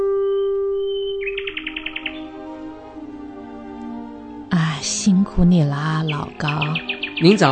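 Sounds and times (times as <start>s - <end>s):
small birds chirping in trees: 0.2s - 2.9s, 4.6s - 7.5s
speech: 5.4s - 7.5s.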